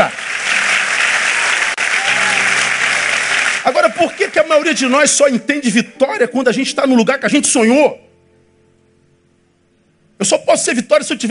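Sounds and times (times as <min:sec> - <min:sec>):
audience applauding loudly: 0:00.0 - 0:05.0
speech: 0:03.7 - 0:08.1, 0:10.2 - 0:11.2.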